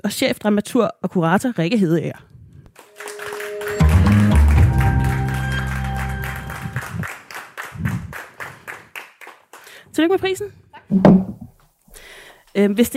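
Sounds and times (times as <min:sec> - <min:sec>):
speech: 0:00.0 - 0:02.3, 0:10.0 - 0:11.4, 0:12.6 - 0:12.9
audience applause at a theatre award presentation: 0:02.7 - 0:09.8.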